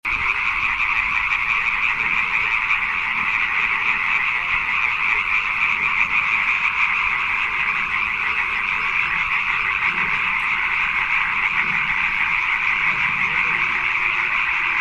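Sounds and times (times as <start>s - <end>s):
natterjack toad rasping trill: 0.1s - 14.7s.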